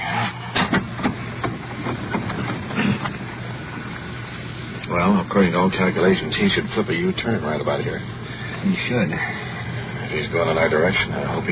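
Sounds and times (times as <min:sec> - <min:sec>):
car engine idling: 0:00.0 - 0:11.5
faint clicking and rattling: 0:00.5 - 0:11.5
speech: 0:04.9 - 0:09.4, 0:10.1 - 0:11.5.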